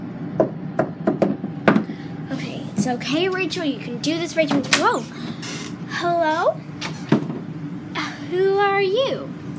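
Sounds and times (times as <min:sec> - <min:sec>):
knocking on a door: 0:00.4 - 0:01.9
speech: 0:02.8 - 0:06.9, 0:08.3 - 0:09.4.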